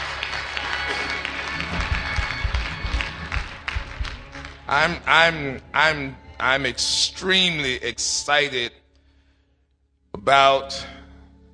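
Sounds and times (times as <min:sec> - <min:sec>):
audience clapping hands: 0:00.0 - 0:05.4
speech: 0:04.7 - 0:08.8, 0:10.2 - 0:11.0.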